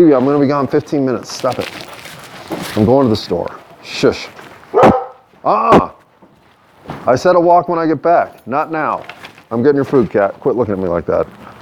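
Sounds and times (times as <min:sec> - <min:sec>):
speech: 0:00.0 - 0:01.9, 0:02.8 - 0:04.8, 0:05.4 - 0:06.0, 0:07.0 - 0:11.5
dog barking: 0:04.7 - 0:05.3.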